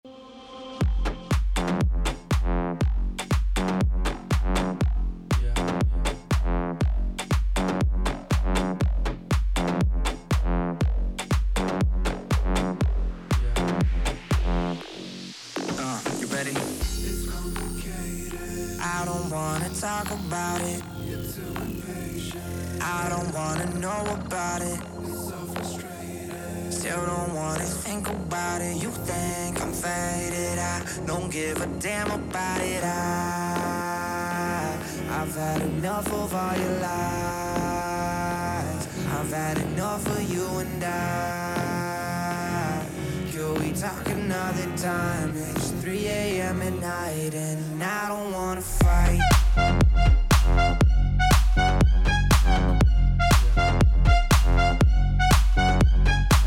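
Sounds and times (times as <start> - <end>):
cool ambient music mix: 0.1 - 56.4.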